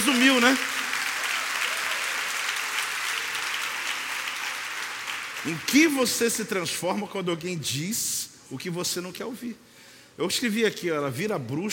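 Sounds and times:
audience applauding: 0.0s - 6.6s
speech: 0.1s - 0.8s, 5.4s - 11.7s.

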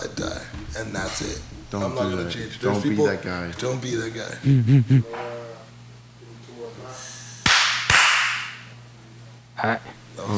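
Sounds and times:
speech: 0.0s - 5.4s, 9.6s - 10.3s
hand clapping: 7.4s - 8.8s.

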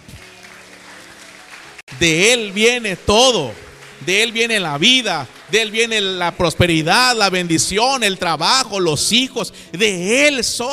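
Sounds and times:
audience applause: 0.0s - 7.0s
speech: 2.0s - 10.7s.

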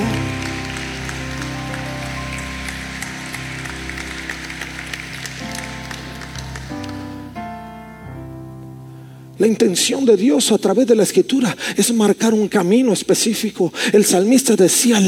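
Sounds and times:
audience applause: 0.0s - 7.4s
speech: 9.4s - 15.0s.

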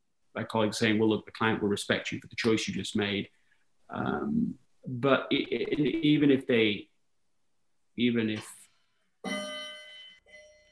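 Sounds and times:
speech: 0.4s - 6.9s, 8.0s - 8.6s, 9.2s - 9.5s
clock chiming: 9.2s - 10.6s.

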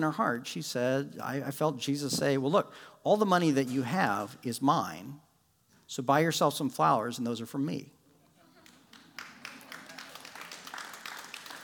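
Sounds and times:
speech: 0.0s - 5.2s, 5.9s - 8.0s
audience clapping: 8.6s - 11.6s.

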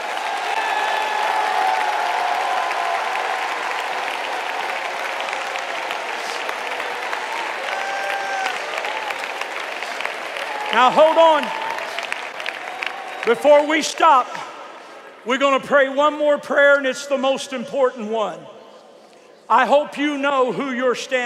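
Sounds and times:
crowd clapping: 0.0s - 15.1s
speech: 10.8s - 11.6s, 13.2s - 14.5s, 15.2s - 18.6s, 19.5s - 21.2s.

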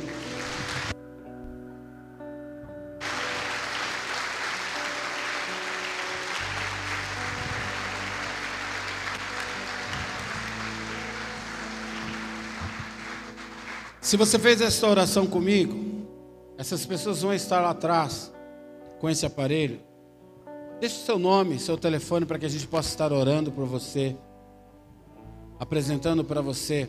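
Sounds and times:
crowd clapping: 0.0s - 1.0s, 3.0s - 14.3s
sustained organ or keyboard tones: 3.0s - 14.1s
speech: 14.1s - 15.8s, 16.6s - 18.4s, 19.0s - 19.9s, 20.8s - 24.3s, 25.6s - 26.8s.

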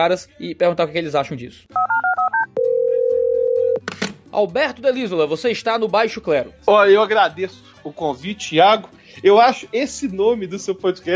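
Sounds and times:
speech: 0.0s - 1.8s, 4.3s - 11.1s
long steady telephone tone: 1.8s - 3.8s.

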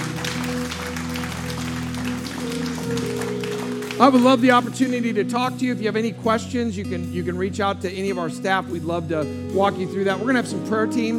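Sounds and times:
audience applauding: 0.0s - 5.2s
sustained keyboard chords: 0.0s - 11.1s
speech: 4.0s - 11.1s.

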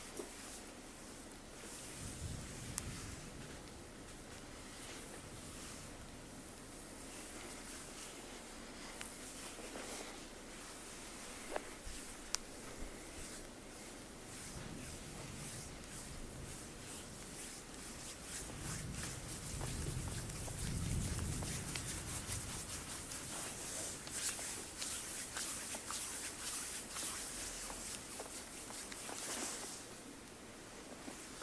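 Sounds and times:
ASMR full body massage sounds: 0.0s - 31.4s.

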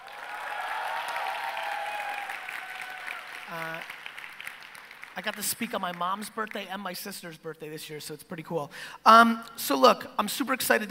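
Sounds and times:
audience applause: 0.0s - 5.7s
speech: 3.5s - 4.0s, 5.2s - 10.8s.

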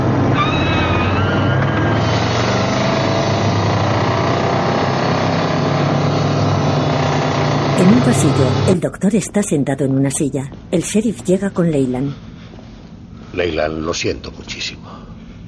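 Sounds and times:
car changing lanes and speeding away: 0.0s - 8.7s
speech: 8.0s - 12.3s, 13.4s - 15.0s.

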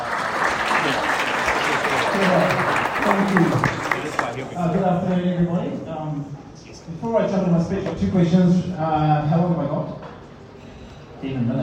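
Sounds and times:
audience applause: 0.0s - 4.6s
speech: 3.2s - 3.7s, 4.4s - 10.0s, 11.2s - 11.6s.

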